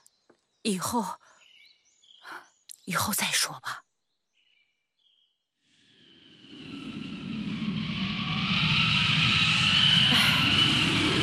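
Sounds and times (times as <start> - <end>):
speech: 0.6 - 1.3, 2.9 - 3.8
strong wind blowing: 6.5 - 11.2.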